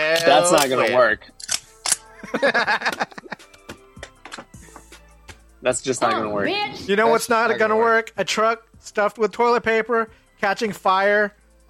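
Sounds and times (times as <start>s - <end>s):
speech: 0.2s - 1.5s, 2.2s - 3.5s, 5.6s - 11.6s
gun clicking: 1.4s - 2.1s
laughter: 2.0s - 3.7s.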